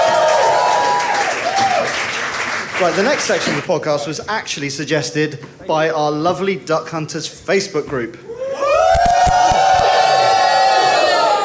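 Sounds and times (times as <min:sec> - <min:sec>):
live audience cheering and whooping: 0:00.0 - 0:02.0, 0:08.3 - 0:11.4
sharp claps: 0:00.0 - 0:03.7, 0:08.9 - 0:10.5
speech: 0:02.8 - 0:08.3.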